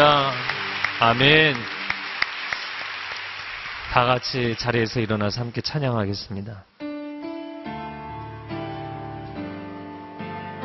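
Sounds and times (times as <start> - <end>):
audience applauding together: 0.0 - 5.6
speech: 1.0 - 1.8, 4.0 - 6.7.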